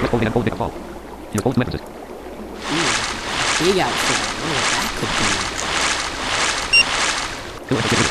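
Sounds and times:
speech: 0.1s - 2.1s, 3.6s - 5.5s, 7.7s - 8.0s
river water rushing: 2.0s - 8.0s.

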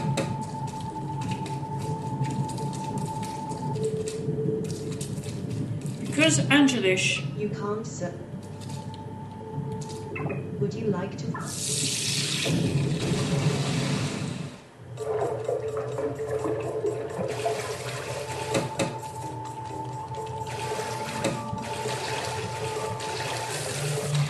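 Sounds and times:
faint tonal hums: 0.0s - 24.2s
speech: 6.3s - 8.3s, 10.8s - 11.8s, 12.4s - 13.5s
rushing, bubbling water as a video game character dives underwater: 11.5s - 19.0s, 20.2s - 24.2s.

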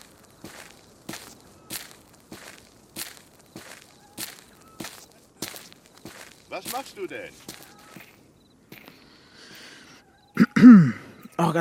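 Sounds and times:
footsteps walking: 0.0s - 9.2s
speech: 6.5s - 7.6s, 10.6s - 11.6s.

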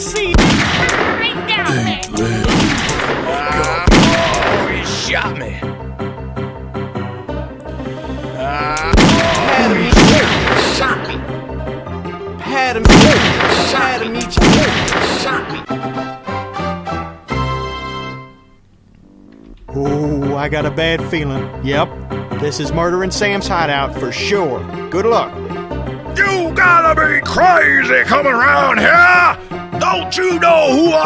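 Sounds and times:
video game musical score: 0.0s - 31.0s
gunshots in a video game outlaw hideout level: 0.2s - 1.4s, 2.3s - 5.0s, 8.8s - 11.2s, 12.8s - 15.6s
speech: 20.4s - 25.4s, 26.2s - 31.0s.

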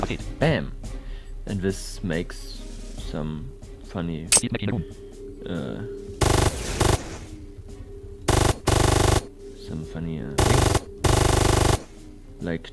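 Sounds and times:
speech: 0.1s - 0.8s, 1.5s - 6.4s, 9.7s - 10.9s, 12.4s - 12.7s
rapid machine gun fire in a video game: 6.2s - 7.3s, 8.3s - 9.4s, 10.4s - 12.0s.

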